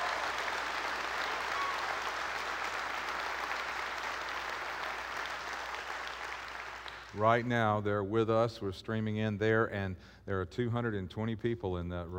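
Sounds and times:
church congregation clapping to welcome a visiting group: 0:00.0 - 0:07.3
speech: 0:07.2 - 0:12.1.

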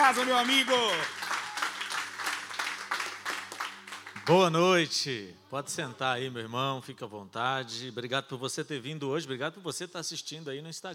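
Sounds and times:
crowd applause: 0:00.0 - 0:04.4
speech: 0:00.1 - 0:01.2, 0:04.2 - 0:10.9.

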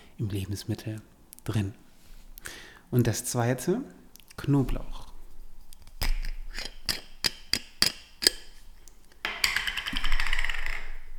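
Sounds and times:
speech: 0:00.2 - 0:01.8, 0:02.4 - 0:05.0
tin can being opened: 0:05.7 - 0:10.9.

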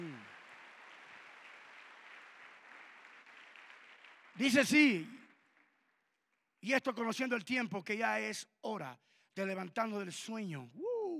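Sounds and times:
audience applauding: 0:00.0 - 0:05.7
speech: 0:04.4 - 0:05.2, 0:06.6 - 0:10.9.

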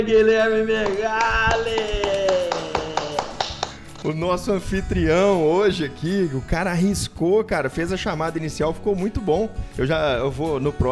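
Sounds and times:
speech: 0:00.0 - 0:02.2, 0:04.0 - 0:10.9
hand claps: 0:00.8 - 0:04.2.

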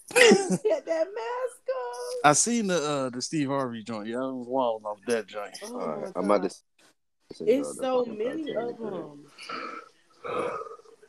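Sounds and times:
speech: 0:00.2 - 0:06.7, 0:07.3 - 0:10.7
strong yawn: 0:09.4 - 0:10.9.

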